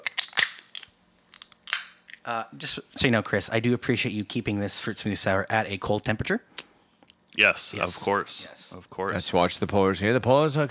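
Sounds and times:
beer can being opened: 0:00.0 - 0:02.2
speech: 0:02.3 - 0:06.7, 0:07.4 - 0:10.6.

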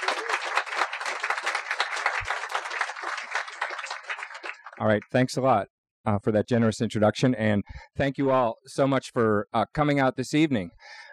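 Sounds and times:
audience applause welcoming two speakers at an evening talk on the New Horizons mission: 0:00.0 - 0:05.0
speech: 0:04.8 - 0:11.0.

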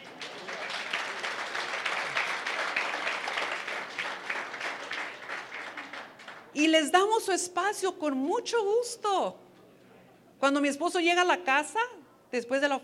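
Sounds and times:
audience applause: 0:00.0 - 0:06.5
speech: 0:06.6 - 0:09.4, 0:10.4 - 0:12.8.

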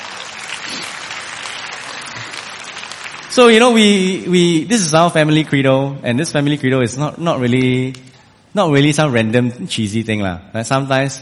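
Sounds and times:
audience applause: 0:00.0 - 0:04.1
speech: 0:03.4 - 0:11.2.

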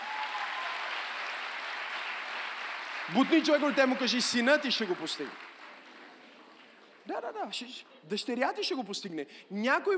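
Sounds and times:
audience applause: 0:00.0 - 0:06.9
speech: 0:03.1 - 0:05.5, 0:07.3 - 0:09.9.

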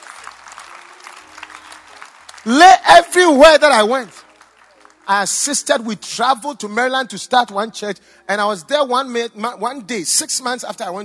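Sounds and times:
audience clapping: 0:00.0 - 0:05.9
speech: 0:02.4 - 0:04.2, 0:05.1 - 0:11.0.

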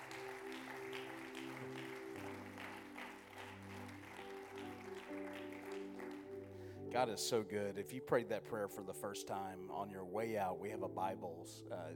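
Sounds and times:
audience hand clapping in praise: 0:00.0 - 0:06.8
speech: 0:06.9 - 0:11.9.

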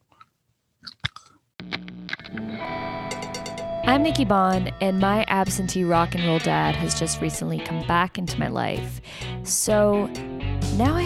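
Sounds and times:
gum chewing: 0:00.0 - 0:01.4
delay effect wash of gum chewing: 0:02.6 - 0:07.8
speech: 0:03.9 - 0:11.0.

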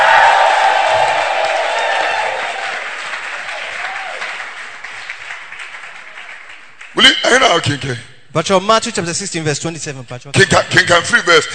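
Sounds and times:
audience shouting: 0:00.0 - 0:04.4
audience clapping: 0:00.0 - 0:07.6
speech: 0:07.6 - 0:11.5.

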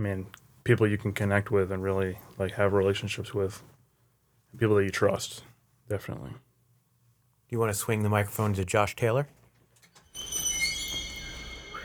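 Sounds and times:
speech: 0:00.0 - 0:03.7, 0:04.5 - 0:06.5, 0:07.5 - 0:09.4
creaky squeak: 0:09.8 - 0:11.8.

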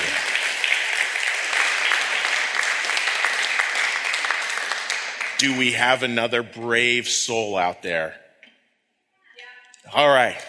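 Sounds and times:
audience applause: 0:00.0 - 0:06.1
speech: 0:05.4 - 0:08.2, 0:09.9 - 0:10.4.

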